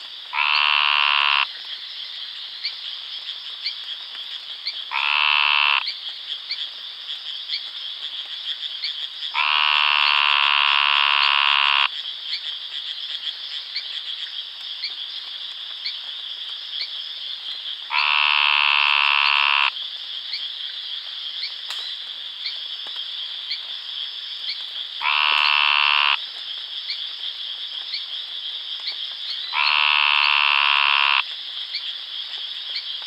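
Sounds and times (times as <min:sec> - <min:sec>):
high rhythmic chorus of pulsing background callers: 0:00.0 - 0:01.5, 0:04.6 - 0:06.6, 0:08.8 - 0:13.9, 0:17.7 - 0:19.8, 0:24.5 - 0:26.2, 0:28.8 - 0:31.9
Brongersma's snouted treefrog buzzing call: 0:00.3 - 0:01.6, 0:04.9 - 0:06.0, 0:09.3 - 0:11.9, 0:17.9 - 0:19.8, 0:25.0 - 0:26.2, 0:29.3 - 0:31.3.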